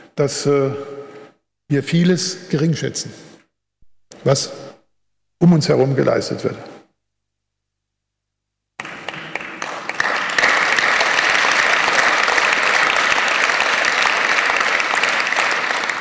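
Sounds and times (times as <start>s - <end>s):
speech: 0.2s - 1.0s, 1.7s - 3.3s, 4.2s - 4.8s, 5.4s - 6.8s
audience applause: 8.8s - 16.0s.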